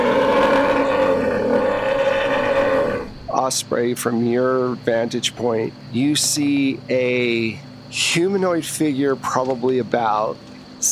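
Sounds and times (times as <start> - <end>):
low weird growling: 0.0 - 3.3
speech: 3.5 - 10.9.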